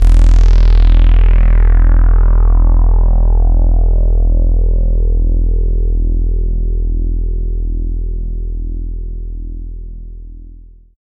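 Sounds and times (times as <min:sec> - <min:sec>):
industrial tekno bass: 0:00.0 - 0:11.0.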